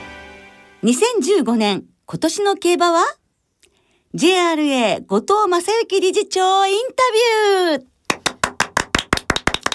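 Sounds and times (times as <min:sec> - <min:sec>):
speech: 0:00.8 - 0:03.2, 0:04.1 - 0:07.9
hands clapping: 0:08.1 - 0:09.7.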